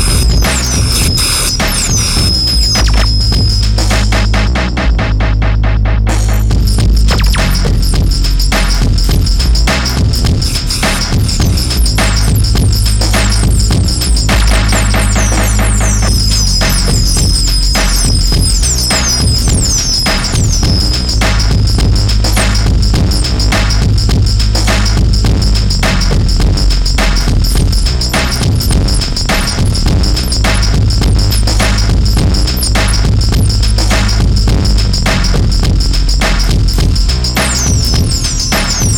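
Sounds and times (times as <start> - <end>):
drums: 0.0 - 38.9
noise: 0.0 - 38.9.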